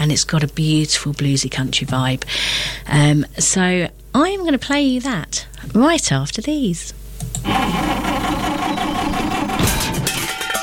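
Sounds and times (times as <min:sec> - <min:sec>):
speech: 0:00.0 - 0:08.4
car engine struggling and sputtering: 0:07.5 - 0:10.3.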